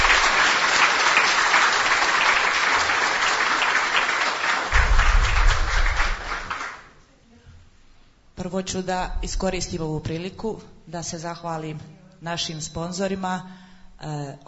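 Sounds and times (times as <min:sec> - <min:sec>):
audience applause at an event: 0:00.0 - 0:06.9
speech: 0:08.5 - 0:14.4.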